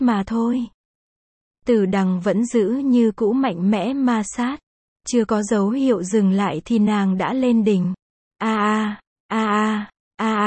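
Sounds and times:
speech: 0.0s - 0.8s, 1.6s - 10.4s
woman moaning: 8.4s - 10.4s.

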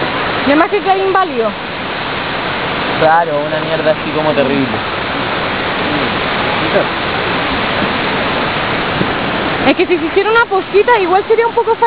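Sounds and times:
rushing waterfall: 0.0s - 11.8s
speech: 0.5s - 1.6s, 3.0s - 5.0s, 5.9s - 7.0s, 9.0s - 11.8s.

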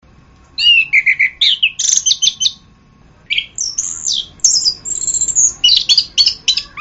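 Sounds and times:
orange-headed thrush song: 0.6s - 2.6s, 3.3s - 6.7s.

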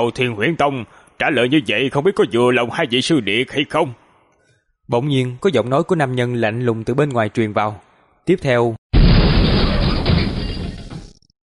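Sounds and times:
speech: 0.0s - 4.0s, 4.9s - 8.8s
earth and rock blasting outward: 8.9s - 11.3s
great door bursting apart with a roaring crash: 9.0s - 11.3s.

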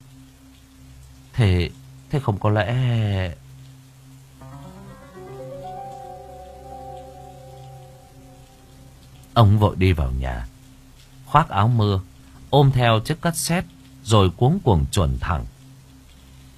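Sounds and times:
rain pattering at night: 0.0s - 16.5s
speech: 1.4s - 3.4s, 9.4s - 10.5s, 11.3s - 15.5s
sustained tones: 4.4s - 9.4s.

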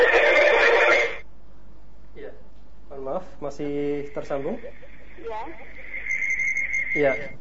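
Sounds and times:
television audio: 0.0s - 1.3s, 3.4s - 7.4s
speech: 3.4s - 6.0s, 6.9s - 7.4s.

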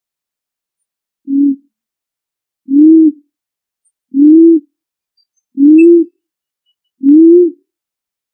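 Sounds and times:
pigeon cooing: 4.2s - 4.6s, 5.6s - 6.1s, 7.0s - 7.6s.

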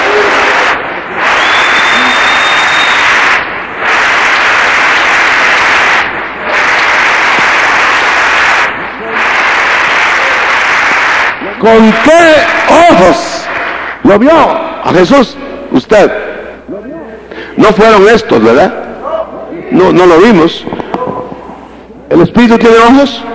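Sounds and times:
audience applauding: 0.0s - 14.2s
speech: 11.6s - 13.3s, 14.0s - 16.2s, 17.6s - 18.8s, 19.7s - 20.7s, 22.1s - 23.3s.

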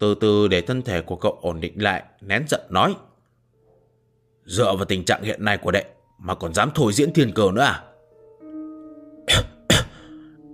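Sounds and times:
speech: 0.0s - 3.1s, 4.5s - 7.9s
coughing: 9.2s - 10.5s.

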